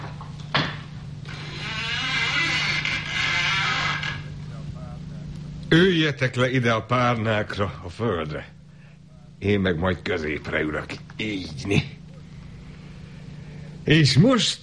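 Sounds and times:
door opening: 0:00.6 - 0:04.3
speech: 0:05.7 - 0:08.6, 0:09.4 - 0:11.9, 0:13.9 - 0:14.6.

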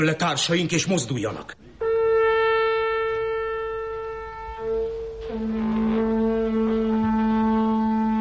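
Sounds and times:
speech: 0:00.0 - 0:01.6
alarm horn being blown: 0:01.8 - 0:08.1.

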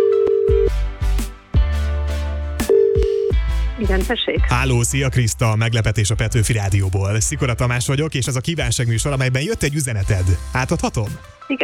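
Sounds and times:
telephone ringing tone: 0:00.0 - 0:00.7, 0:02.7 - 0:03.4
music bed: 0:00.0 - 0:11.6
loud thumping bass hits: 0:00.5 - 0:07.8, 0:10.0 - 0:11.3
speech: 0:03.8 - 0:11.6.

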